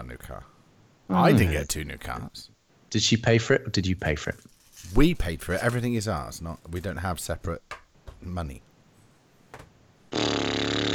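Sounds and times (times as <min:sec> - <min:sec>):
speech: 0:00.1 - 0:08.7
person mimicking vacuum cleaner with the mouth: 0:10.1 - 0:10.9.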